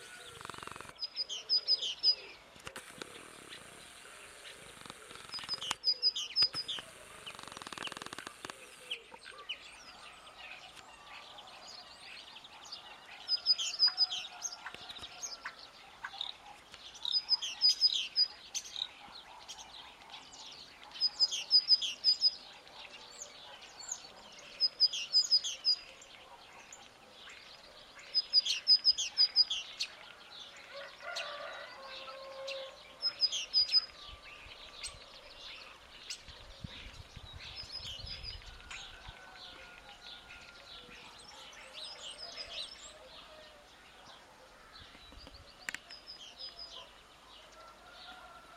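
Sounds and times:
great tit calls: 0.0s - 10.0s, 11.7s - 30.1s, 31.2s - 43.0s
other birds twittering: 0.0s - 48.5s.

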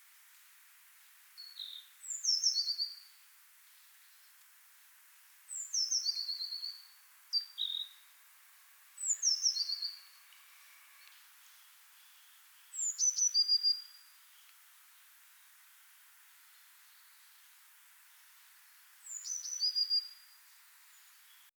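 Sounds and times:
faint hiss: 0.0s - 21.5s
Eurasian blue tit song phrases: 1.4s - 3.2s, 5.5s - 8.1s, 9.0s - 15.1s, 16.4s - 21.5s.

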